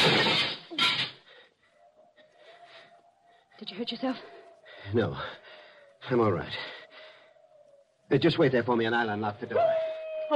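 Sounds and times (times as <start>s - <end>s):
window glass breaking: 0.0s - 1.1s
speech: 3.6s - 5.4s, 6.0s - 6.8s, 8.1s - 10.3s.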